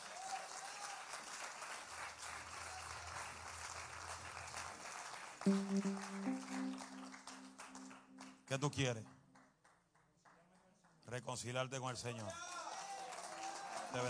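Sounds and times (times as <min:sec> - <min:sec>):
audience applause: 0:00.0 - 0:08.4, 0:12.6 - 0:14.0
speech: 0:05.4 - 0:07.2, 0:08.5 - 0:09.2, 0:11.1 - 0:12.5.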